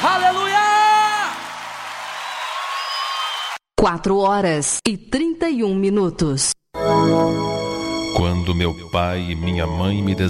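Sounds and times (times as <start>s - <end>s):
audience applause: 0.0s - 3.6s
scattered whoops: 2.0s - 3.6s
speech: 3.8s - 10.2s.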